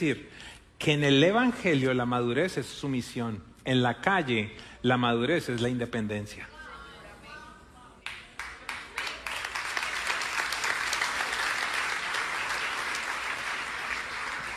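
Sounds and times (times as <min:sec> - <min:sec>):
speech: 0:00.0 - 0:06.5
audience applauding: 0:08.1 - 0:14.5.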